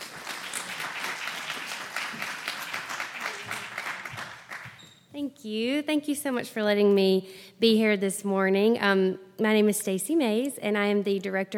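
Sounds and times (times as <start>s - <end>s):
audience applauding to welcome a speaker to the stage: 0.0s - 4.9s
speech: 5.2s - 11.5s.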